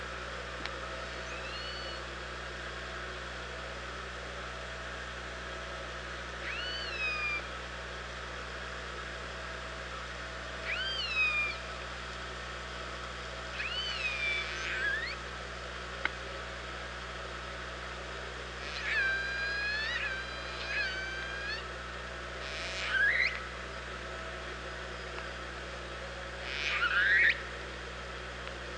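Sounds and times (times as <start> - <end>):
low hum: 0.0 - 28.7
orca tonal calls: 1.3 - 2.0, 6.4 - 7.5, 10.6 - 11.6, 13.5 - 15.2, 18.6 - 21.7, 22.4 - 23.5, 26.4 - 27.5.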